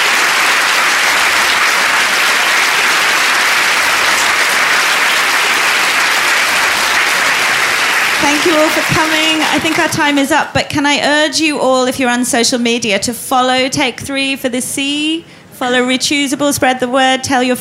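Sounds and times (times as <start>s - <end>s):
audience applause: 0.0s - 10.3s
speech: 8.4s - 17.5s.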